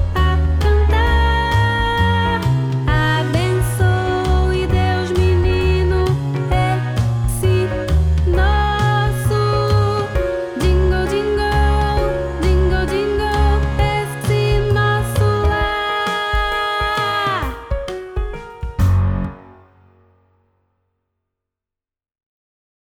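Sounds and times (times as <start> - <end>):
jazzy music: 0.0 - 20.2.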